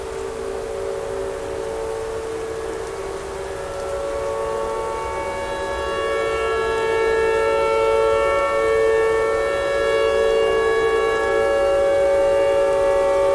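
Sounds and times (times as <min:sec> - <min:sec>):
tornado siren: 0:00.0 - 0:13.3.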